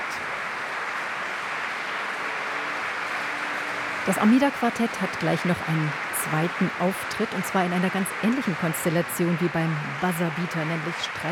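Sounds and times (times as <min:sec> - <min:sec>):
concert hall audience applause: 0:00.0 - 0:11.2
speech: 0:04.0 - 0:11.2.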